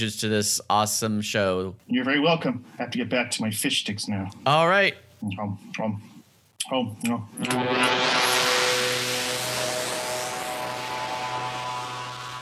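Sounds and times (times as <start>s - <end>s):
speech: 0.0s - 8.4s
steady tonal hum: 7.4s - 12.4s
science-fiction portal swirling rush as someone is sucked through: 7.5s - 12.4s.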